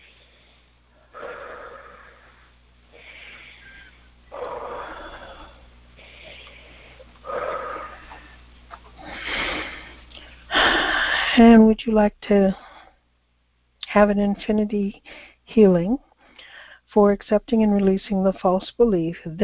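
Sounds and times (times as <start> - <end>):
slow deep breathing during a guided healing session: 0.0 - 11.4, 16.2 - 16.9
speech: 11.4 - 12.6, 14.0 - 16.1, 16.9 - 19.4.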